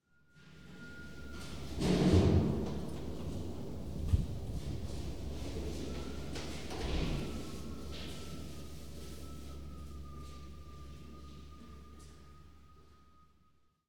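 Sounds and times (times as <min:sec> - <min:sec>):
ambience: 0:00.3 - 0:13.4.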